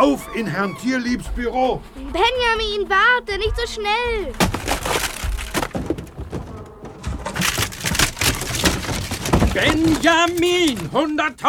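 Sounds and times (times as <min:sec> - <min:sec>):
speech: 0:00.0 - 0:05.1, 0:09.6 - 0:11.4
elephant crashing through wooden door: 0:04.3 - 0:11.1.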